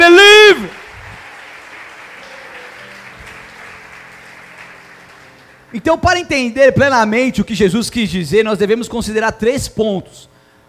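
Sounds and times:
audience applauding: 0.5 - 5.8
speech: 5.8 - 10.3.

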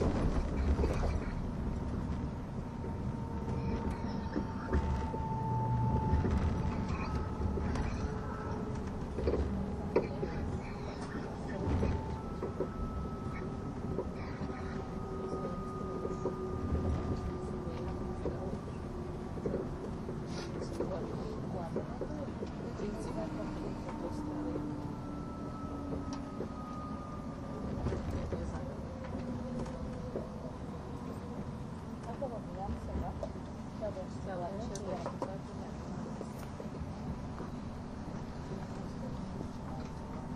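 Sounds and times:
ETR610 tilting EuroCity train rumble on the Gotthard Base Tunnel route: 0.0 - 40.3
thin whining tones: 2.6 - 20.0, 22.6 - 31.8.

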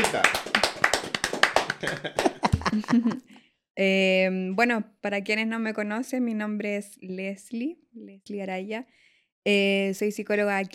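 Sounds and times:
applause: 0.0 - 2.9
speech: 0.1 - 0.5, 1.8 - 10.7
laughter: 1.5 - 3.3.

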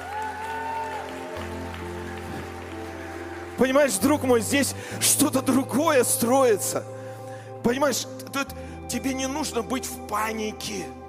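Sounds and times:
audience applause: 0.0 - 4.5
speech: 3.6 - 6.9, 7.6 - 11.0.

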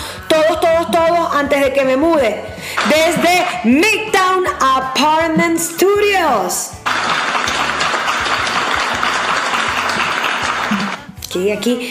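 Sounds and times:
speech: 1.4 - 6.8, 11.3 - 11.8
applause: 6.9 - 11.1.

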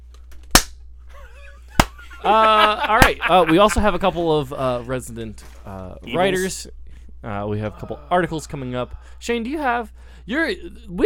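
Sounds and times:
low steady hum: 0.0 - 11.0
laughter: 1.1 - 4.9
hand claps: 1.8 - 2.0, 3.0 - 3.2
speech: 2.2 - 11.0.

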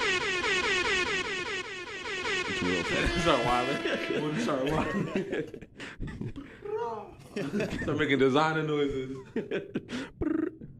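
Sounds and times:
air horn sound effect: 0.0 - 5.1
laughter: 2.4 - 6.6, 7.2 - 8.3, 8.9 - 10.7
speech: 2.6 - 6.1, 7.4 - 10.1.

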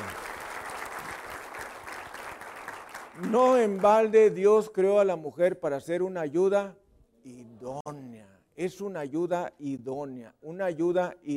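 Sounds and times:
church congregation applauding: 0.0 - 4.7
speech: 3.2 - 7.8, 8.6 - 11.3.

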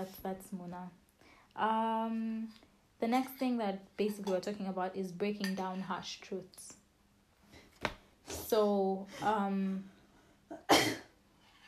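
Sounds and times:
speech: 0.0 - 1.0, 1.6 - 6.8, 7.8 - 9.9
person coughing from something caught in the throat: 10.5 - 11.1.

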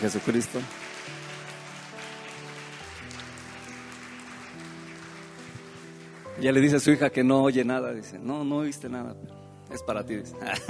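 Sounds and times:
speech: 0.0 - 0.8, 6.4 - 10.6
audience applause: 0.0 - 6.9
laughter: 10.4 - 10.6.

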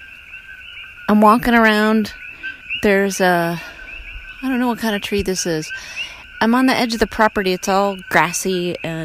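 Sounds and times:
coqui frogs calling at night at the grassy edge of a property: 0.0 - 9.0
speech: 1.1 - 2.2, 2.8 - 3.7, 4.4 - 9.0.

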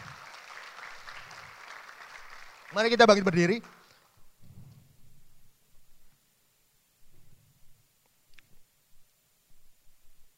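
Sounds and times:
audience applauding: 0.0 - 4.2
speech: 2.7 - 3.8.

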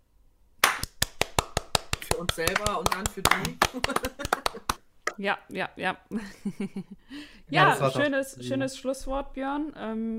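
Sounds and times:
applause: 0.6 - 4.8
speech: 2.2 - 10.1
laughter: 3.5 - 4.8.

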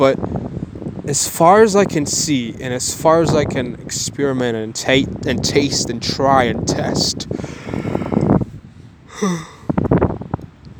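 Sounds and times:
speech: 0.0 - 0.3, 1.1 - 7.9, 9.2 - 9.5
person yawning: 9.1 - 9.7.

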